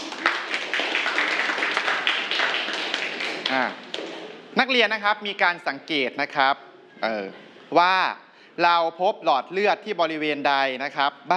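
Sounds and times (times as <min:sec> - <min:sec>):
students clapping: 0:00.0 - 0:04.5
speech: 0:03.5 - 0:03.8, 0:04.6 - 0:11.3.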